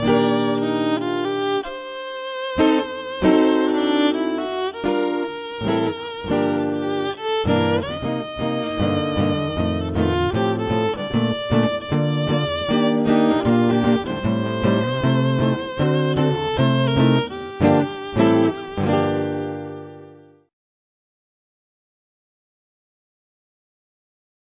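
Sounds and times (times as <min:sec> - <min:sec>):
guitar: 0:00.0 - 0:20.5
violin: 0:00.0 - 0:20.5.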